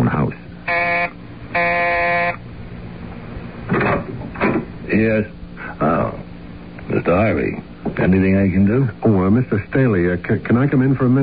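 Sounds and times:
doorbell buzzer being pressed: 0.6s - 2.4s
noisy clatters: 3.6s - 4.8s
speech: 5.0s - 5.4s, 7.0s - 11.2s.

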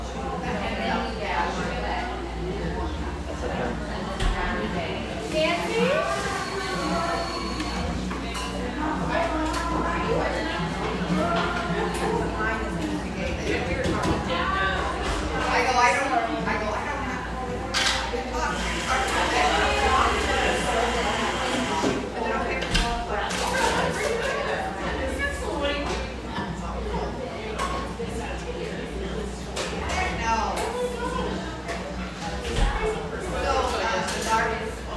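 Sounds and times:
busy cafe chatter of many overlapping voices: 0.0s - 34.9s.

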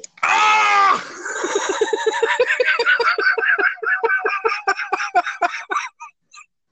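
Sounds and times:
man imitating screaming while on fire: 0.2s - 1.1s
laughter: 1.3s - 6.2s.

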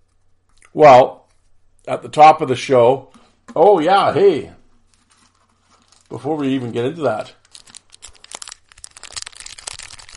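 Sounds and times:
speech: 0.7s - 1.2s, 1.8s - 4.6s, 6.1s - 7.4s
packs of Score 1991 hockey cards from Dollarama crinkling: 4.8s - 10.1s.

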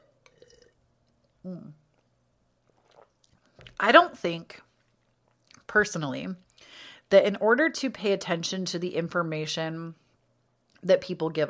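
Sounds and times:
person sipping wine and swallowing: 0.1s - 3.8s
speech: 1.4s - 1.8s, 3.8s - 4.7s, 5.7s - 10.0s, 10.8s - 11.4s.

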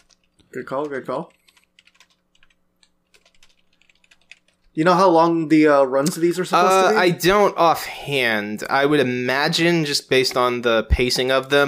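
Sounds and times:
typing on a keyboard: 0.0s - 4.8s
speech: 0.5s - 1.4s, 4.8s - 11.6s.

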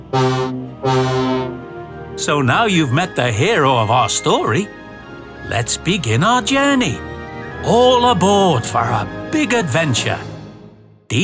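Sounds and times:
diesel shunting engine horn: 0.0s - 2.0s
speech: 0.1s - 1.6s, 2.2s - 4.8s, 5.4s - 10.3s, 11.1s - 11.2s.

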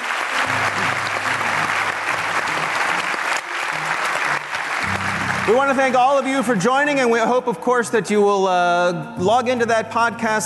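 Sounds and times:
audience round of applause: 0.0s - 6.6s
speech: 5.5s - 10.4s.

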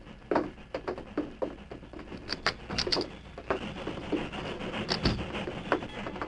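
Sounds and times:
train stopping: 2.2s - 6.2s.

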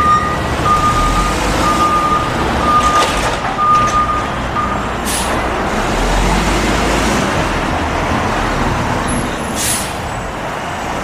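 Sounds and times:
thin high reversing beep: 0.0s - 4.9s
garbage truck engine roar: 0.0s - 11.0s.

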